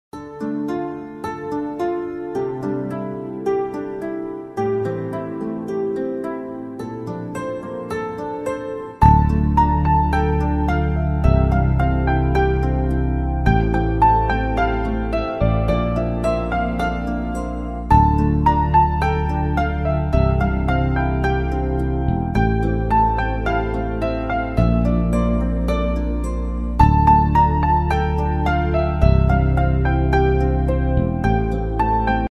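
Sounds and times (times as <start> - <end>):
romantic background music: 0.2 - 32.2.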